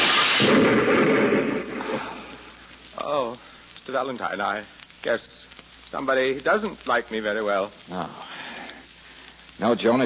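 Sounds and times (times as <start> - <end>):
hand grenade explosion: 0.0 - 2.4
speech: 3.1 - 8.3, 9.6 - 10.0.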